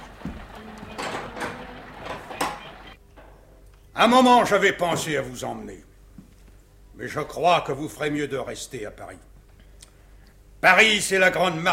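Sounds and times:
window sliding and knocking being closed: 0.0s - 2.9s
speech: 4.0s - 5.9s, 7.0s - 9.3s, 10.6s - 11.7s.

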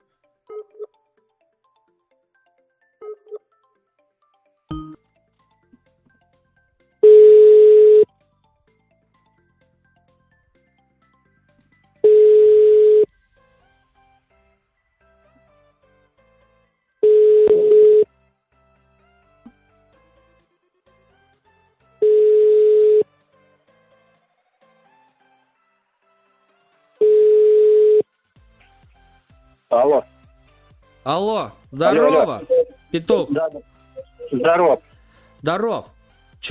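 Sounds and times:
short telephone beeps: 7.0s - 8.0s, 12.1s - 13.1s, 17.0s - 18.0s, 22.0s - 23.0s, 27.0s - 28.0s
speech: 29.9s - 30.1s, 31.1s - 33.7s, 34.3s - 36.5s.

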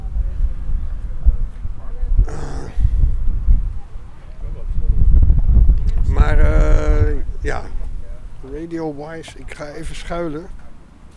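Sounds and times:
strong wind blowing into microphone: 0.0s - 10.6s
speech: 8.6s - 10.6s.

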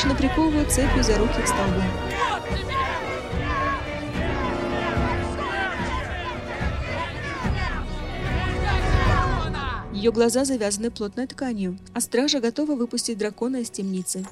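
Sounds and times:
speech: 0.0s - 3.0s, 10.0s - 14.3s
crowd shouting: 0.0s - 9.9s.

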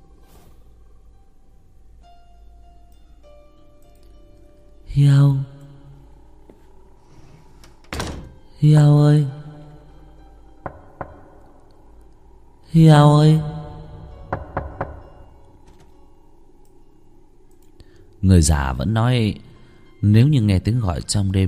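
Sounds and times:
speech: 5.0s - 5.5s, 8.6s - 9.4s, 12.8s - 13.5s, 18.3s - 19.4s, 20.0s - 21.4s
persistent knocking on a door: 10.6s - 11.4s, 14.2s - 15.3s.

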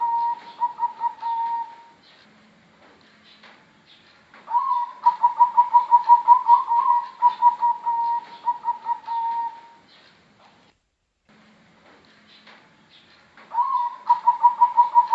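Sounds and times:
Bangkok type zebra dove singing quick evenly pulsed coos: 0.0s - 2.0s, 4.5s - 10.0s, 13.5s - 15.1s.

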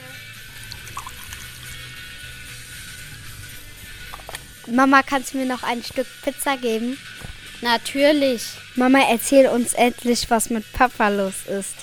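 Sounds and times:
water being poured: 0.5s - 1.8s
speech: 4.7s - 11.8s.

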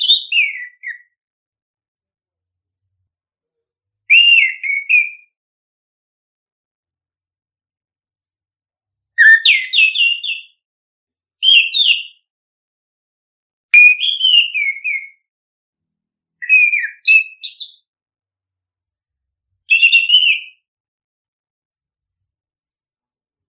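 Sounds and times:
bird singing chirps and whistles: 0.0s - 1.2s, 4.1s - 5.4s, 9.2s - 10.6s, 11.4s - 12.3s, 13.8s - 15.3s, 16.4s - 17.8s, 19.7s - 20.6s.

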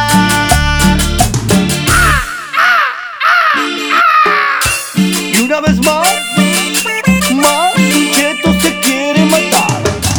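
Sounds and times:
loud rhythmic music with a heavy bass beat: 0.0s - 2.4s, 4.6s - 10.1s
parrot squawking: 1.9s - 5.0s.

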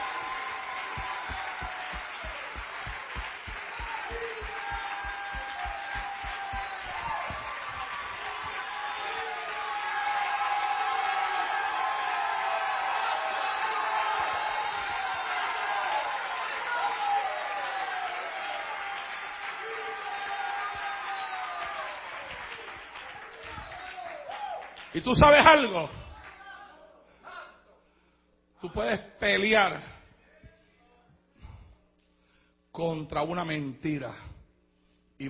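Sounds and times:
audience applauding: 0.0s - 25.6s
cheering: 0.0s - 26.8s
speech: 25.0s - 26.0s, 28.7s - 29.9s, 32.8s - 34.3s.

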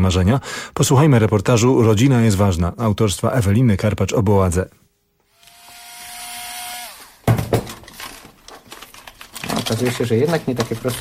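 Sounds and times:
speech: 0.0s - 4.8s, 9.7s - 10.9s
small electric screwdriver for electronics unscrewing a screw: 5.3s - 7.2s
clattering knocks and rattles: 7.2s - 10.9s.

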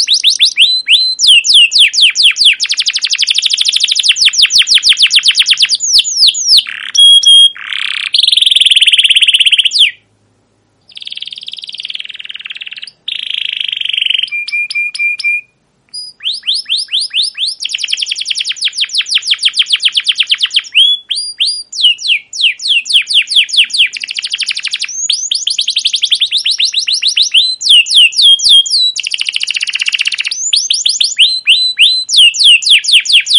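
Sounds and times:
canary song: 0.0s - 10.1s, 10.8s - 33.3s.

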